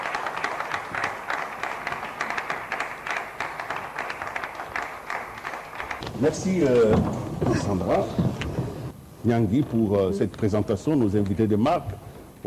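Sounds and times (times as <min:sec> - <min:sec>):
audience applause: 0:00.0 - 0:08.9
speech: 0:06.2 - 0:08.5, 0:09.2 - 0:12.4.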